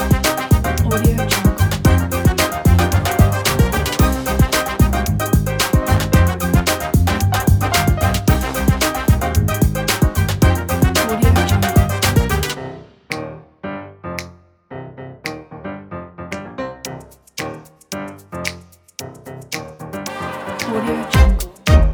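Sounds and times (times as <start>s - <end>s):
big band jazz: 0.0s - 12.8s.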